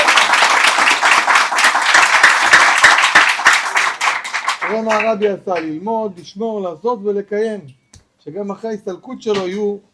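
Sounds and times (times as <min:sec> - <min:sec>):
audience applause: 0:00.0 - 0:05.1
speech: 0:04.7 - 0:09.9.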